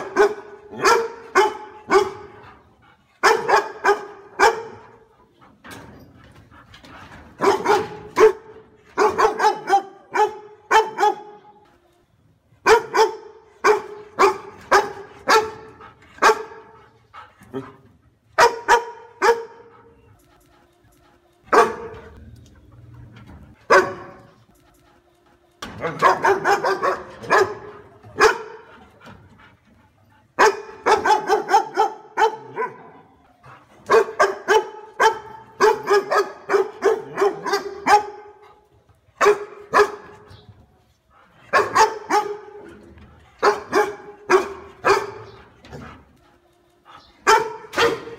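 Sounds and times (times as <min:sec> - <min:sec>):
dog barking: 0:00.0 - 0:02.4, 0:03.2 - 0:05.0, 0:07.4 - 0:11.5, 0:12.6 - 0:16.8, 0:18.4 - 0:19.7, 0:21.5 - 0:22.2, 0:23.7 - 0:24.4, 0:25.8 - 0:28.7, 0:30.4 - 0:33.2, 0:33.9 - 0:38.4, 0:39.2 - 0:40.1, 0:41.5 - 0:42.7, 0:43.4 - 0:45.4, 0:47.2 - 0:48.1.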